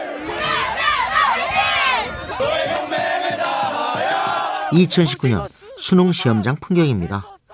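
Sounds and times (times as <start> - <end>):
crowd of students cheering outside an exam hall: 0.0 - 5.5
crowd of students chanting rhythmically: 0.0 - 7.5
speech: 4.7 - 7.3.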